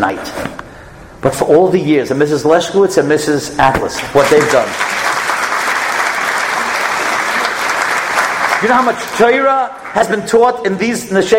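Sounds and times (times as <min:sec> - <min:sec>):
speech: 0:00.0 - 0:05.1, 0:08.6 - 0:11.3
sustained dense audience applause: 0:04.0 - 0:10.0.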